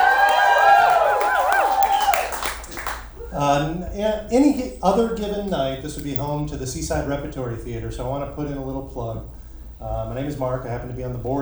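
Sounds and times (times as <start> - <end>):
clapping: 0.0 - 3.3
sharp whistles: 0.0 - 3.4
excited theater audience cheering: 0.0 - 3.6
speech: 3.5 - 11.3.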